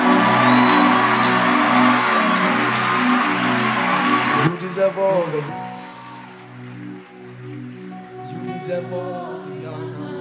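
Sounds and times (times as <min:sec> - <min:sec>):
audience clapping and cheering: 0:00.0 - 0:09.6
speech: 0:04.9 - 0:05.7, 0:08.7 - 0:09.3.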